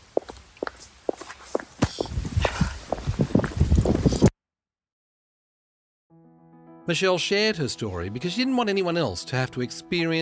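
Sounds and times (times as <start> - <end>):
footsteps of a woman walking away: 0.0 - 4.3
speech: 6.9 - 10.2.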